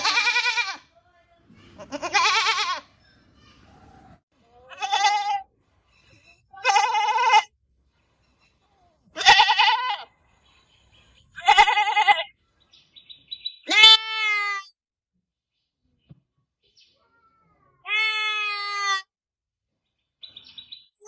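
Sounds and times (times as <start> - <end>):
happy goat bleating: 0.0 - 0.8, 1.8 - 2.9, 4.7 - 5.5, 6.6 - 7.5, 9.2 - 10.1, 11.4 - 12.3, 13.7 - 14.6, 17.8 - 19.1.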